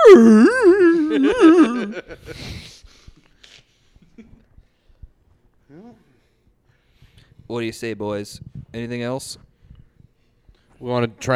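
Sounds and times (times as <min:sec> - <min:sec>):
person imitating a dog's howling whine: 0:00.0 - 0:02.0
speech: 0:07.5 - 0:09.5, 0:10.8 - 0:11.3.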